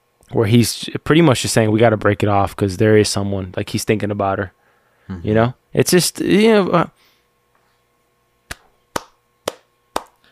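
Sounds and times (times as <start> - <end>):
speech: 0.3 - 7.0
soft hand clapping: 8.5 - 10.3.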